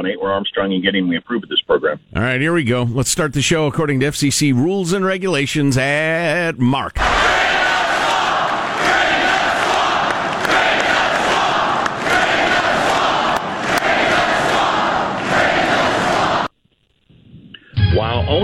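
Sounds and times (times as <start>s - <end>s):
speech: 0.0s - 7.6s, 18.3s - 18.4s
fired-up political rally crowd cheering: 7.0s - 16.5s.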